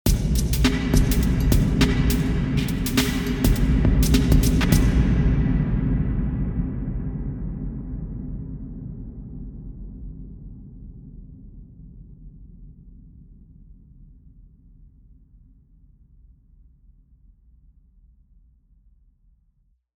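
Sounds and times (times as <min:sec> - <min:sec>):
drum in Hamilton Mausoleum: 0:00.1 - 0:06.5.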